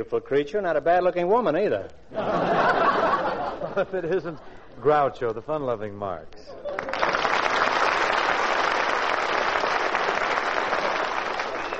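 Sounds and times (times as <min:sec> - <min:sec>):
speech: 0:00.0 - 0:02.9, 0:03.8 - 0:06.6
laughter: 0:02.1 - 0:04.9
audience applause: 0:06.6 - 0:11.7.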